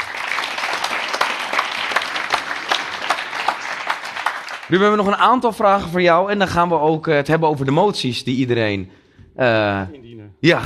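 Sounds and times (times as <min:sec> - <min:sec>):
big round of applause: 0:00.0 - 0:05.4
speech: 0:04.7 - 0:10.6.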